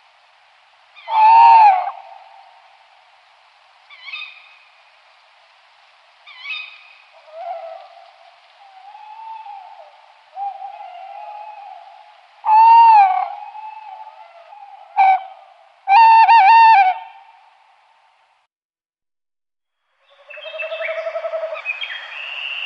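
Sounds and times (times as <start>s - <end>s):
tawny owl hooting: 1.0s - 2.4s, 8.6s - 17.2s, 20.1s - 21.8s.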